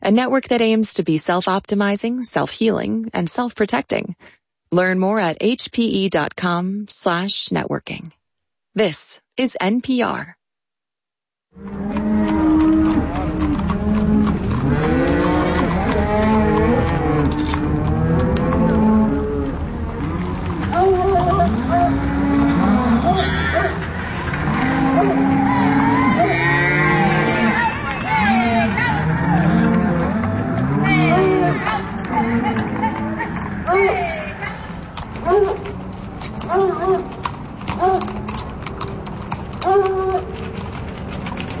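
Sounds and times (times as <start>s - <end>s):
speech: 0.1s - 8.2s, 8.8s - 10.4s, 11.6s - 12.7s
herd of cattle mooing during a cattle drive: 11.6s - 40.6s
rumble of movement and possible vehicle noise: 11.6s - 41.5s.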